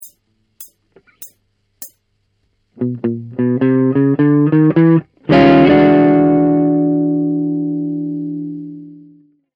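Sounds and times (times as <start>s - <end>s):
blues music: 2.8s - 9.2s.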